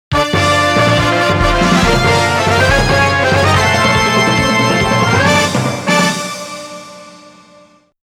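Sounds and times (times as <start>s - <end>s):
game start sound: 0.2s - 6.4s.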